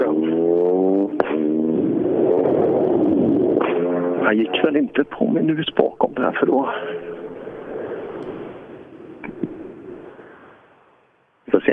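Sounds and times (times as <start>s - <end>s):
car driving past: 0.0s - 5.2s, 6.6s - 10.2s
speech: 4.3s - 7.0s.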